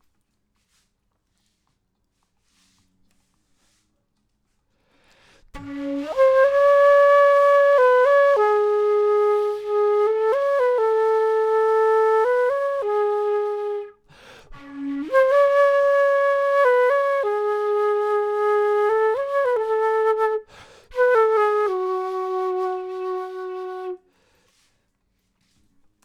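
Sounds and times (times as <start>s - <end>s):
flute intro: 5.6s - 24.1s.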